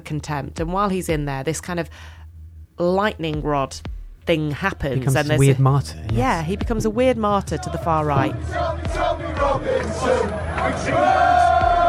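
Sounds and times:
speech: 0:00.1 - 0:02.2, 0:02.8 - 0:11.6
crowd screaming at a street rally: 0:08.3 - 0:11.8.

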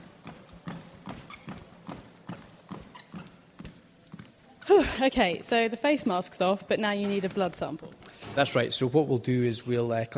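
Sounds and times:
footsteps walking on a treadmill during a fitness test: 0:00.0 - 0:04.6, 0:06.8 - 0:08.6
speech: 0:04.7 - 0:10.1.

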